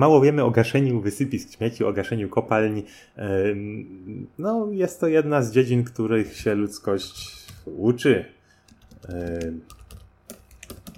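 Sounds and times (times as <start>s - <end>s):
speech: 0.0s - 8.4s, 9.0s - 9.8s
typing a Skype password on a computer keyboard: 8.6s - 10.9s.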